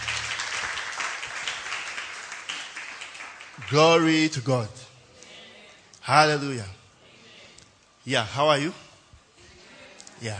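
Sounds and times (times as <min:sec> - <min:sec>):
audience applauding worship team: 0:00.0 - 0:03.8
speech: 0:03.6 - 0:04.8, 0:06.1 - 0:06.8, 0:08.0 - 0:08.8, 0:10.2 - 0:10.3.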